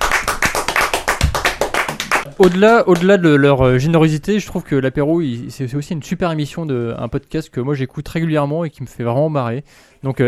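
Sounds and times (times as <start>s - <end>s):
small group applauding: 0.0s - 3.2s
speech: 2.4s - 10.2s.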